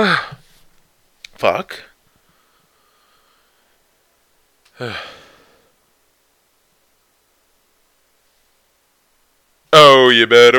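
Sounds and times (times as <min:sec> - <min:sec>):
person yawning: 0:00.0 - 0:00.4, 0:04.7 - 0:05.7
speech: 0:01.4 - 0:01.9, 0:04.8 - 0:05.2, 0:09.7 - 0:10.5.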